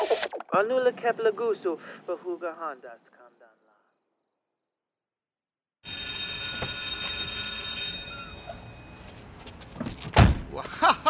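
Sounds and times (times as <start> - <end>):
speech: 0.5 - 3.4, 10.5 - 11.0
school period bell ringing: 5.8 - 9.5
shuffling: 8.4 - 10.8
sharp door slam: 9.8 - 10.5
laughter: 10.5 - 11.0.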